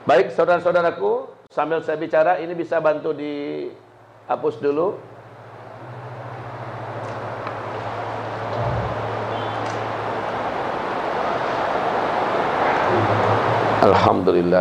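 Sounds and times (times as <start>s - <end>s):
speech: 0.1s - 5.1s, 13.8s - 14.5s
low constant hum: 1.4s - 14.5s
heavy rain: 5.1s - 14.3s.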